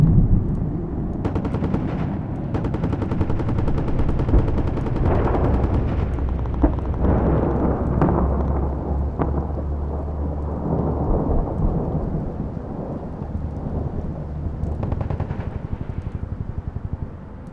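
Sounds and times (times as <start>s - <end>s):
distant war sounds: 0.0s - 17.5s.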